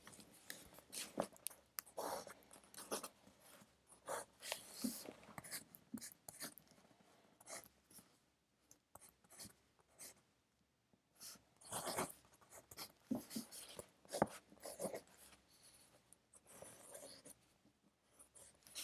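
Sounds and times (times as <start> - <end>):
pencil writing: 0.5 - 6.7, 7.4 - 7.8, 8.9 - 10.3, 11.2 - 17.4, 18.1 - 18.8.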